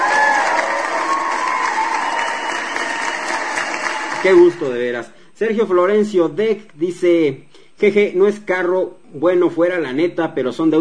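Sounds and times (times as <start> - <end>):
whistles and cheers: 0.0 - 4.4
crowd clapping: 0.0 - 4.8
speech: 4.2 - 10.7.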